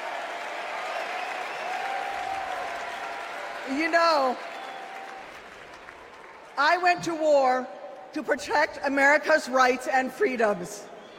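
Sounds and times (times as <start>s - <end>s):
convention crowd applauding and cheering: 0.0s - 6.6s
speech: 3.7s - 4.5s, 6.6s - 10.9s
faint sustained whistle: 10.9s - 11.1s.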